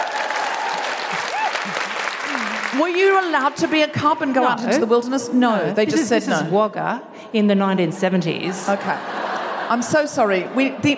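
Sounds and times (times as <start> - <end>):
audience applause: 0.0 - 4.4
laughter: 1.6 - 2.7, 8.5 - 10.9
speech: 2.7 - 10.9.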